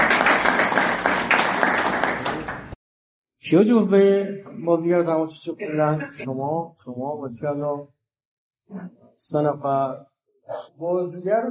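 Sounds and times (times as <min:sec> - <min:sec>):
audience applause: 0:00.0 - 0:02.8
speech: 0:03.5 - 0:08.0, 0:08.7 - 0:11.5.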